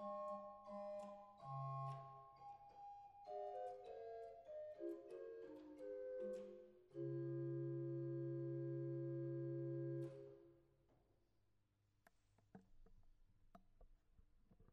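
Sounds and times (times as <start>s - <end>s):
flute: 0.0s - 10.3s.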